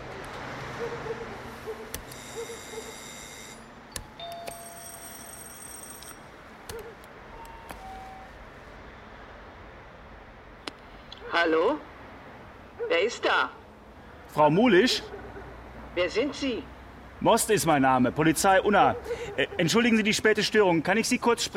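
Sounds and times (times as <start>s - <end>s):
electronic doorbell buzz: 2.1s - 6.3s
speech: 11.4s - 11.9s, 13.0s - 13.6s, 14.3s - 15.2s, 16.0s - 21.5s.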